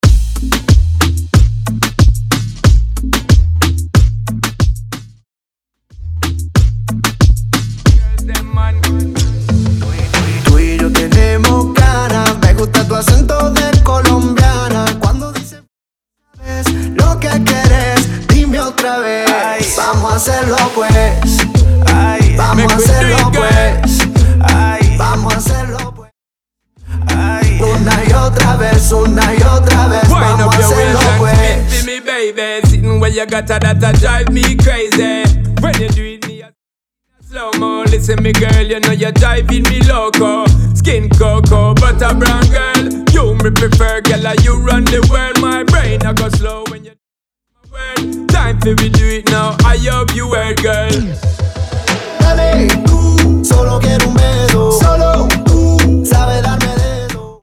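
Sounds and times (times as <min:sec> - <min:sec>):
clean dancehall beat: 0:00.0 - 0:05.2, 0:06.0 - 0:15.7, 0:16.4 - 0:26.1, 0:26.8 - 0:36.6, 0:37.2 - 0:47.0, 0:47.6 - 0:57.4.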